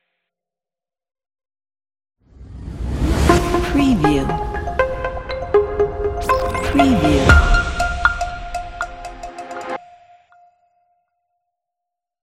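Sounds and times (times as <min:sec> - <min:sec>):
soft logo ident: 0:02.4 - 0:09.8.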